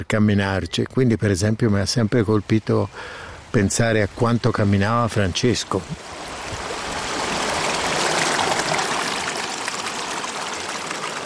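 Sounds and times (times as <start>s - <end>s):
speech: 0.0s - 6.3s
flowing water of a mountain river over rocks: 2.4s - 11.2s.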